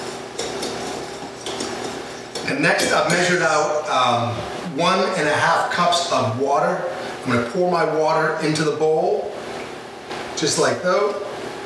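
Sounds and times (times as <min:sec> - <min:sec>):
whisking dry ingredients in a bowl: 0:00.0 - 0:03.5
speech: 0:02.5 - 0:09.4, 0:10.4 - 0:11.3.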